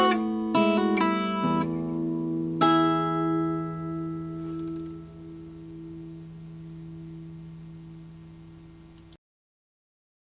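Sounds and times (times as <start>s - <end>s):
1934 Gibson Kalamazoo KG11 sunburst guitar: 0.0s - 9.2s.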